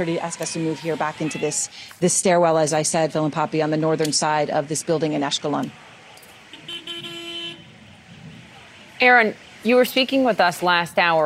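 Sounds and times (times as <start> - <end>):
speech: 0.0 - 5.9, 9.0 - 11.2
cars driving by on road: 0.0 - 11.2
car horn honking: 6.3 - 7.8.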